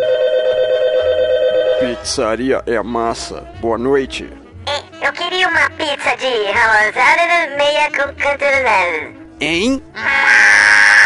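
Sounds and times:
telephone ringing with a steady electronic tone: 0.0 - 2.1
speech: 1.8 - 4.4, 5.0 - 10.7.

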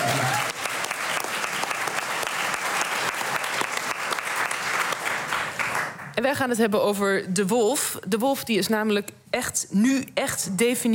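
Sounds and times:
audience applause: 0.0 - 6.1
speech: 6.2 - 10.9.

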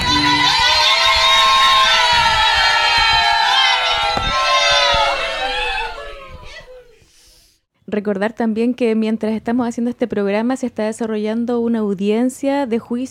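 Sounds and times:
group cheering in support during a live radio broadcast: 0.0 - 7.0
speech: 8.0 - 13.0.

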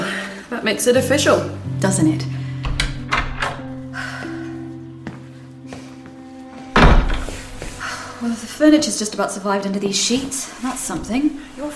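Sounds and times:
speech: 0.5 - 2.4, 8.6 - 11.7
heavy home door opening with dull thunks: 2.6 - 3.8, 6.7 - 7.8.

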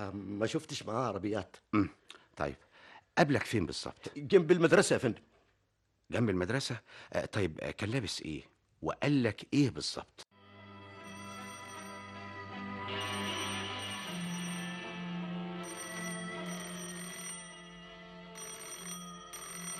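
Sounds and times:
speech: 0.0 - 5.3, 6.1 - 10.3
telephone ringing: 10.9 - 19.7.

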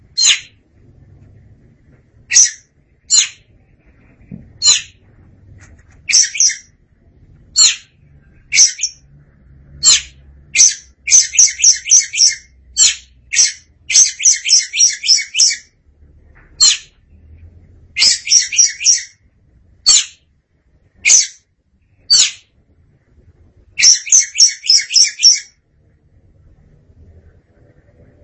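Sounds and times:
Oriental magpie-robin singing: 0.1 - 0.6, 2.3 - 3.6, 4.6 - 5.0, 6.0 - 6.8, 7.6 - 9.1, 9.8 - 15.8, 16.6 - 17.0, 18.0 - 19.2, 19.8 - 20.2, 21.0 - 21.4, 22.0 - 22.5, 23.8 - 25.6.

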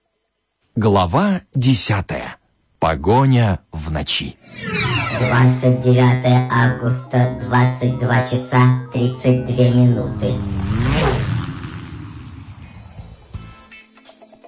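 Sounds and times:
speech: 0.8 - 10.8
car driving off and turning corner: 9.7 - 13.4.

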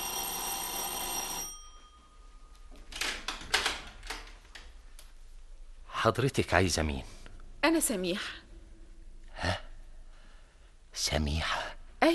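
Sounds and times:
doorbell ringing with a buzzing metallic tone: 0.0 - 2.5
speech: 6.0 - 8.4, 11.1 - 12.1.

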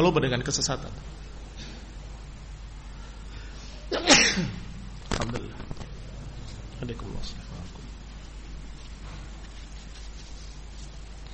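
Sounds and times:
speech: 0.0 - 1.2, 3.9 - 4.6, 5.2 - 5.8, 6.8 - 7.7
room hum: 0.0 - 11.3
loud sneeze: 3.9 - 4.6.

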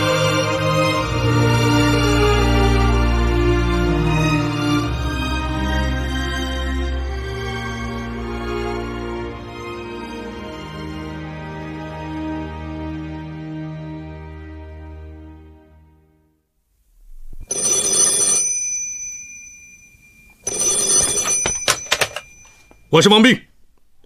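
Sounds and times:
sustained tonal music: 0.0 - 16.2
old telephone bell ringing in harsh rattling bursts: 17.5 - 23.3
speech: 22.9 - 23.5.

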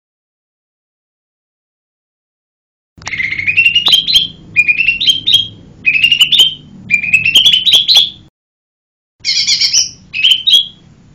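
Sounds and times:
bird singing lively high chirped phrases: 3.0 - 8.3, 9.2 - 10.9.

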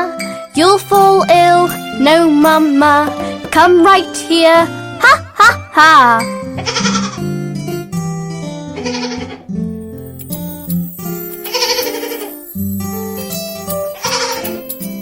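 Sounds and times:
speech: 0.6 - 6.8
baby goat bleating: 6.6 - 7.3, 8.7 - 9.4.

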